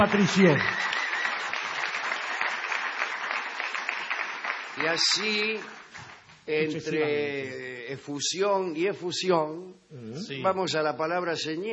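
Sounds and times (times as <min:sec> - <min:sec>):
speech: 0:00.0 - 0:01.0, 0:04.8 - 0:05.8, 0:06.5 - 0:11.7
crowd applauding: 0:00.0 - 0:06.4.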